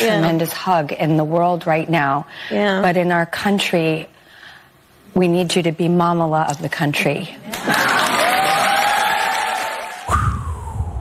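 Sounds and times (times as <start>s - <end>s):
speech: 0.0s - 4.2s, 5.2s - 8.0s
audience cheering and applauding: 7.6s - 10.5s
whoops: 8.0s - 10.9s.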